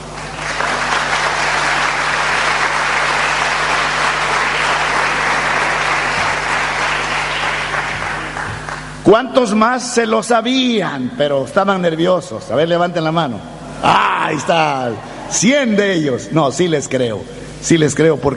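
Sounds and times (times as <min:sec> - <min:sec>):
audience applause: 0:00.0 - 0:09.0
speech: 0:09.1 - 0:18.3.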